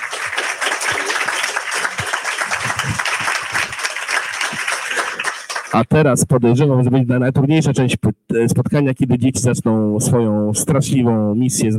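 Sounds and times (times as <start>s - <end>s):
audience applause: 0.0s - 5.8s
speech: 5.7s - 11.7s.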